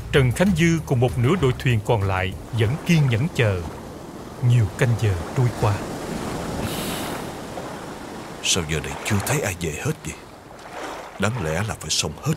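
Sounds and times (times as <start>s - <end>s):
speech: 0.2s - 3.8s, 4.4s - 5.9s, 8.4s - 10.2s, 11.2s - 12.3s
mournful howling wind: 3.6s - 8.5s.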